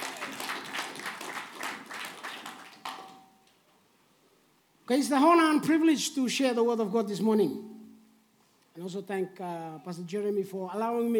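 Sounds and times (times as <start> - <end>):
crowd clapping: 0.0 - 3.6
speech: 4.9 - 7.7, 8.8 - 11.1.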